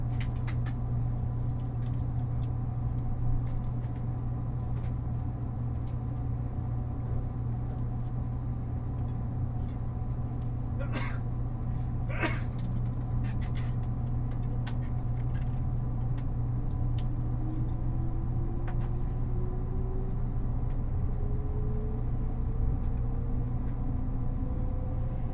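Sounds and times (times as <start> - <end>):
Nishi-Kyushu Shinkansen interior rumble from Nagasaki toward Saga: 0.0 - 25.3
Shinkansen rising whine: 16.9 - 25.3.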